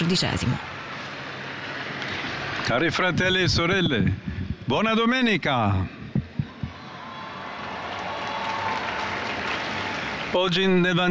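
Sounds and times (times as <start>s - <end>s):
speech: 0.1s - 0.8s, 2.7s - 6.0s, 10.3s - 11.0s
crowd applauding: 6.4s - 11.0s.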